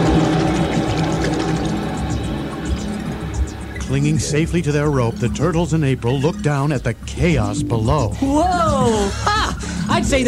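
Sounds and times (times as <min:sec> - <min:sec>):
geyser of water bursting through roof: 0:00.0 - 0:02.4
speech: 0:03.9 - 0:10.2
laughter: 0:08.2 - 0:10.2.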